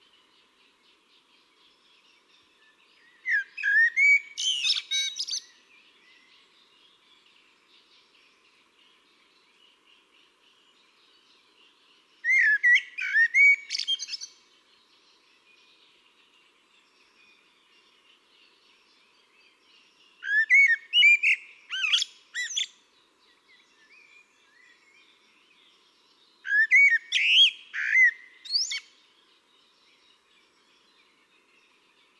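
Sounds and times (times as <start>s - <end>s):
Eurasian blackbird song: 2.6s - 5.5s, 12.2s - 14.4s, 20.2s - 22.8s, 26.4s - 29.0s.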